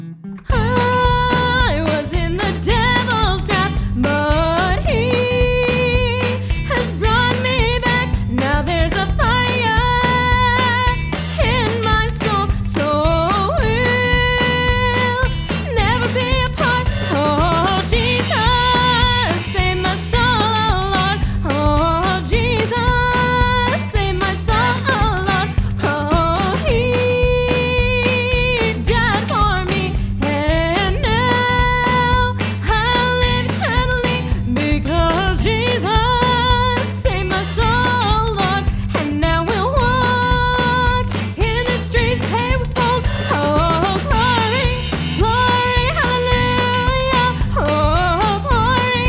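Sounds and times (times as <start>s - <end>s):
gospel music: 0.3s - 49.0s.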